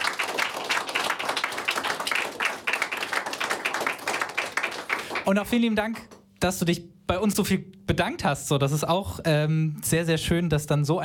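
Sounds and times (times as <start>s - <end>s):
audience applause: 0.0s - 5.4s
speech: 5.3s - 11.0s.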